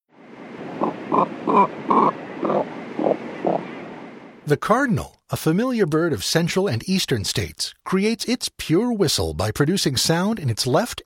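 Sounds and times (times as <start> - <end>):
cormorant grunting call: 0.8 - 3.6
speech: 1.1 - 2.0, 4.5 - 11.0.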